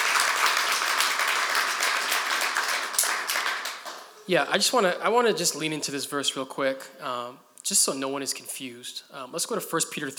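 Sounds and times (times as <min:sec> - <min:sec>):
audience clapping hands: 0:00.0 - 0:04.2
speech: 0:04.3 - 0:10.1.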